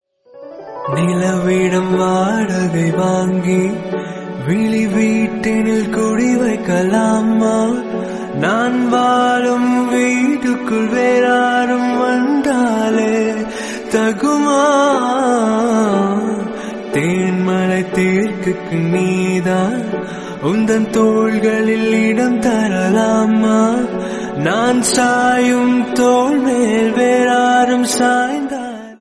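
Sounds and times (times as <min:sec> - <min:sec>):
Tamil ringtone music: 0:00.4 - 0:29.0.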